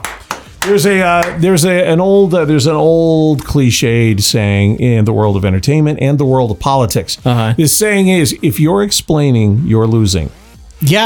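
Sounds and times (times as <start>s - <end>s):
hand clapping: 0.0s - 1.7s
speech: 0.7s - 11.0s.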